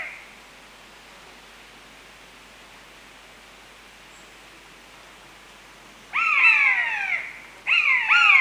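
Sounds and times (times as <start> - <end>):
common buzzard long mewing cry in Europe: 6.2 - 8.3.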